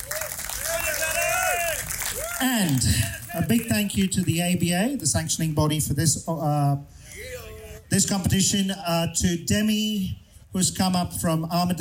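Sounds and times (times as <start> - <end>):
audience applause: 0.0 - 3.8
speech: 2.4 - 7.0, 7.9 - 11.7.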